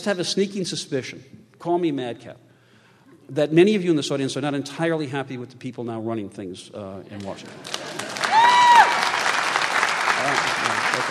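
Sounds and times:
speech: 0.0s - 2.5s, 3.3s - 8.0s
audience applause: 7.2s - 11.1s.

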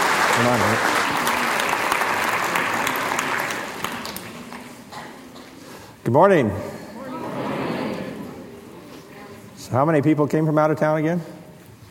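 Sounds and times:
audience applause welcoming a speaker: 0.0s - 4.8s
speech: 0.4s - 1.0s, 6.1s - 6.8s, 9.7s - 11.4s.

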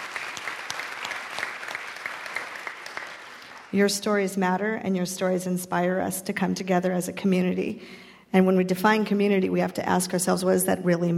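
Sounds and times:
audience applause: 0.0s - 3.8s
speech: 3.7s - 11.1s.

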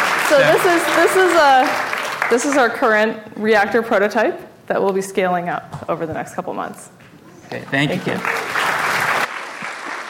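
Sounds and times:
audience applause: 0.0s - 2.8s, 7.8s - 10.0s
speech: 0.3s - 8.4s.

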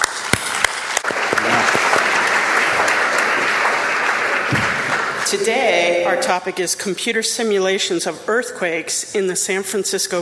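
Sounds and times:
audience applause: 0.0s - 6.3s
speech: 5.3s - 10.2s.

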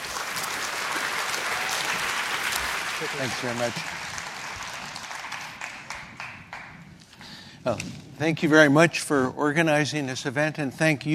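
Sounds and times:
crowd applauding: 0.0s - 7.0s
speech: 3.0s - 4.1s, 7.6s - 11.1s.

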